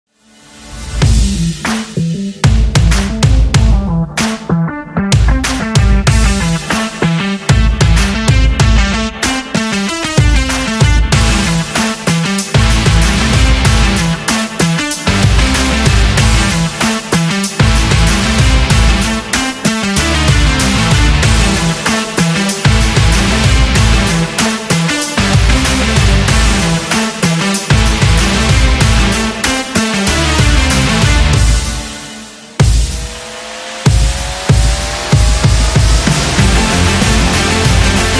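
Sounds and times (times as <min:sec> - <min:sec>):
rock music for a promo: 0:00.5 - 0:38.1.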